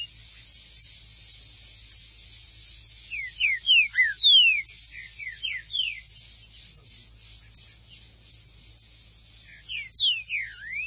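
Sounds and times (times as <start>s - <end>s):
green-winged saltator singing: 0.0s - 0.9s, 2.7s - 8.2s, 9.3s - 10.8s.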